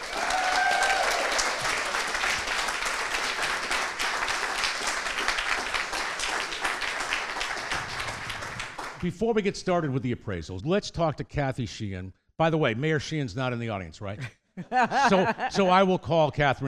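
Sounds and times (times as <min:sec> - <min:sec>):
audience round of applause: 0:00.0 - 0:09.1
speech: 0:09.0 - 0:16.6
laughter: 0:14.2 - 0:15.9.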